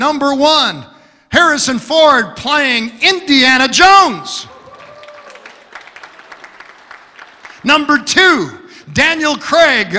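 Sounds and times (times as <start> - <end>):
speech: 0.0 - 4.5, 7.6 - 9.9
audience applause: 4.5 - 7.7.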